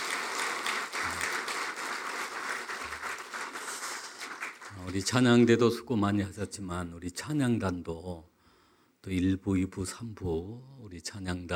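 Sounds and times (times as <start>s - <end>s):
audience applause: 0.0s - 5.1s
speech: 4.8s - 8.3s, 9.0s - 11.5s.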